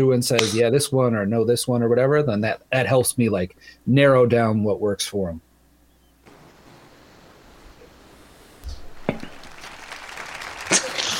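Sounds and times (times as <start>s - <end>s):
speech: 0.0s - 5.5s
live audience applause: 8.7s - 11.1s.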